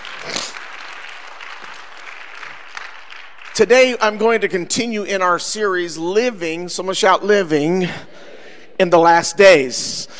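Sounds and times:
crowd applauding: 0.0s - 4.4s
speech: 3.6s - 10.1s.

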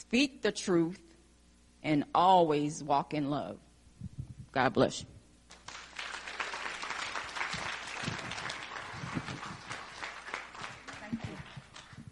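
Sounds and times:
speech: 0.0s - 1.1s, 1.8s - 3.7s, 4.5s - 5.1s
crowd applauding: 5.5s - 12.1s.

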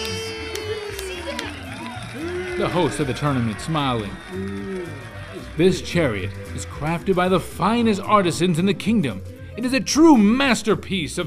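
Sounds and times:
applause: 0.0s - 7.9s
crowd cheering: 0.0s - 8.5s
speech: 2.6s - 11.2s.

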